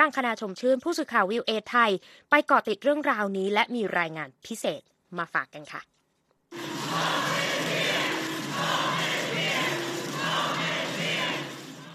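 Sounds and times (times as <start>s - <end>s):
speech: 0.0s - 7.2s
crowd of protesters chanting a slogan outdoors: 6.6s - 11.9s.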